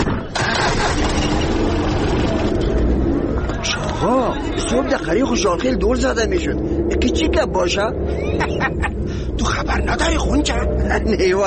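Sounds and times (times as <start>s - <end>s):
car engine as the fully loaded vehicle sets off: 0.0s - 11.4s
speech: 4.7s - 11.4s
laughter: 8.1s - 11.1s.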